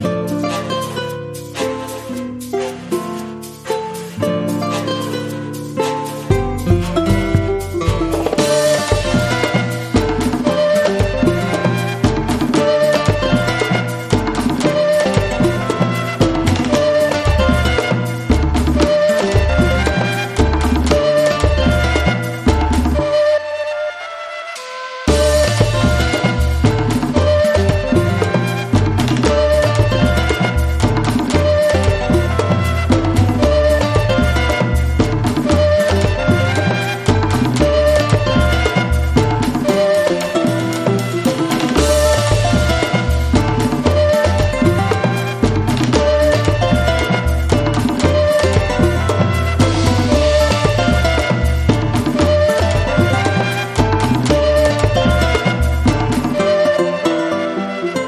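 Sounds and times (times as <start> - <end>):
Latin world groove music: 0.0 - 58.0.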